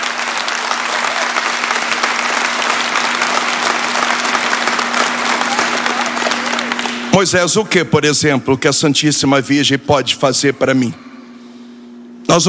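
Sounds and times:
applause from a large audience: 0.0s - 7.1s
speech: 7.2s - 11.1s, 12.3s - 12.4s.

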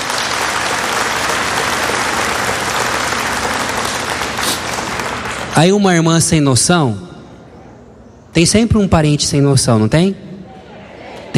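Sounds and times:
audience applause: 0.0s - 5.6s
speech: 5.6s - 7.1s, 8.4s - 10.3s.

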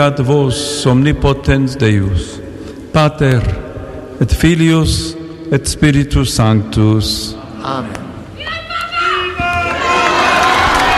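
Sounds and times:
speech: 0.0s - 3.6s, 4.2s - 8.0s
faithful applauding after the Angelus blessing: 9.7s - 10.9s.

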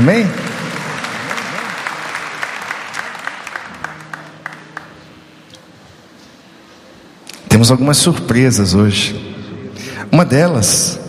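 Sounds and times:
speech: 0.0s - 0.4s, 7.6s - 9.3s, 10.1s - 11.0s
audience applause: 0.0s - 5.3s.

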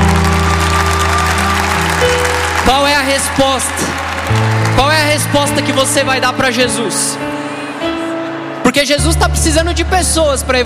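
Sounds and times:
congregation applause during a church service: 0.0s - 8.5s
speech: 2.7s - 3.9s, 4.8s - 7.4s, 8.7s - 10.6s.

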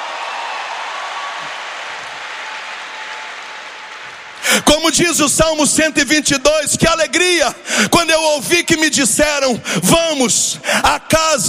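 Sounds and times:
audience applauding: 0.0s - 5.2s
speech: 4.5s - 11.4s.

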